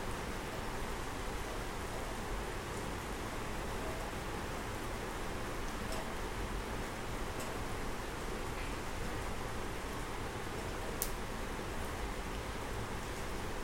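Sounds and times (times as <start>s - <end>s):
rain falling: 0.0s - 13.6s.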